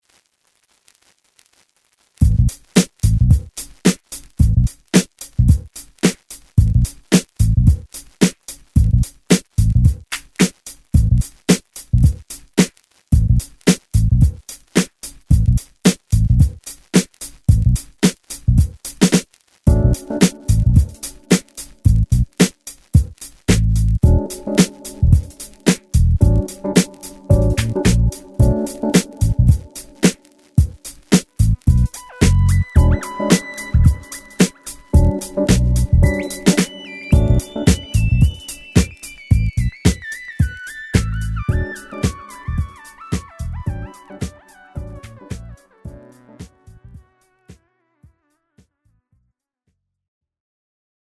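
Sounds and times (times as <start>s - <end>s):
funk music: 2.2s - 47.7s.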